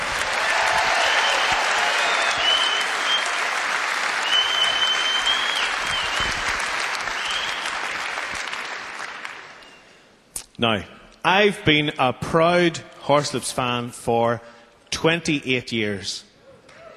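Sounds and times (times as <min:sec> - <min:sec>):
audience applause: 0:00.0 - 0:09.8
speech: 0:10.6 - 0:16.3.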